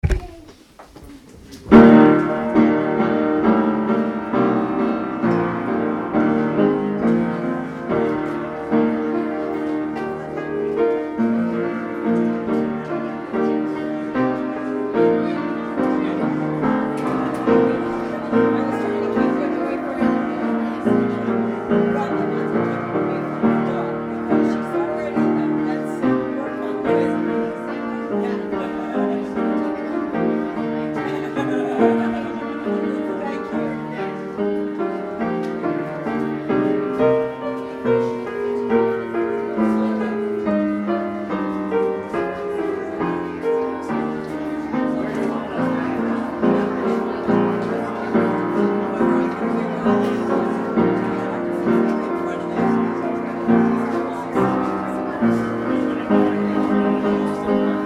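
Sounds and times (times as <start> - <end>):
piano postlude: 0.0 - 57.8
laughter: 30.8 - 33.5.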